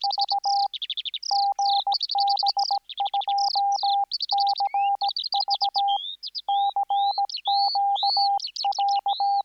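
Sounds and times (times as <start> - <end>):
skylark singing: 0.0 - 9.4.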